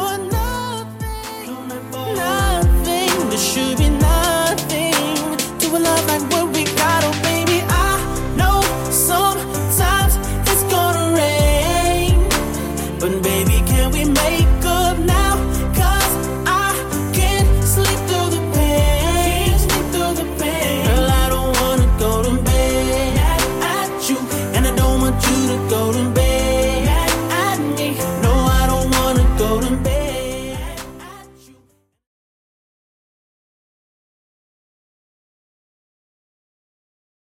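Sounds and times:
RnB drum beat at 65 bpm: 0:00.2 - 0:31.2.

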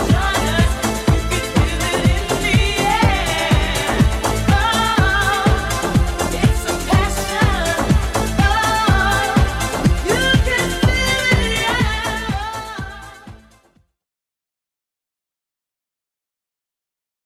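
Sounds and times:
90s Redrum drum machine beat: 0:00.0 - 0:13.7.

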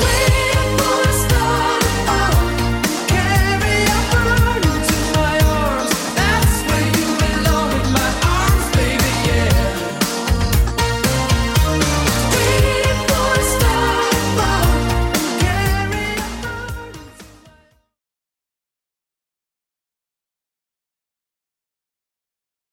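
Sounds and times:
Redrum 80s drum beat: 0:00.0 - 0:17.3.

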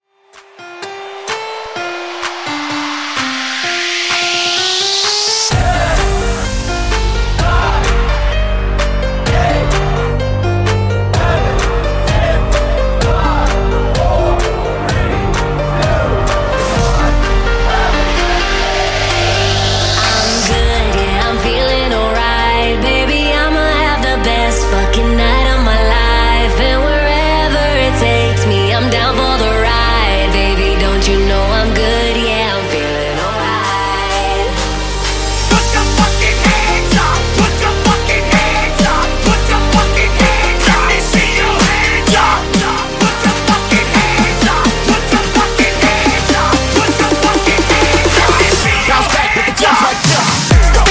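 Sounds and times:
New Year's Eve dance music: 0:00.3 - 0:50.9.

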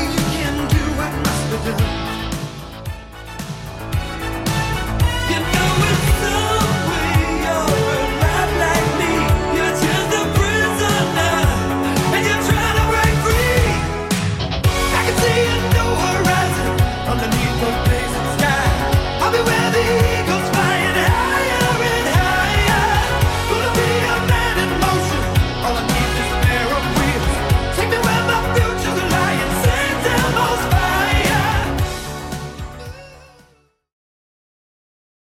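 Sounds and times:
1980s drum machine beat at 112 bpm: 0:00.0 - 0:33.0.

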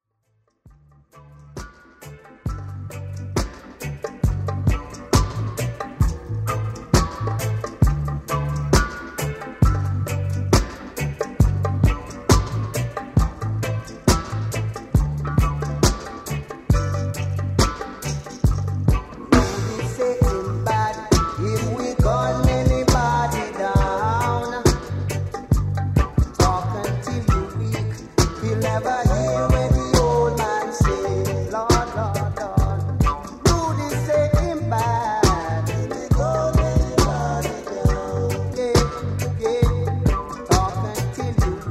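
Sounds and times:
reggae music mix: 0:00.5 - 0:41.7.

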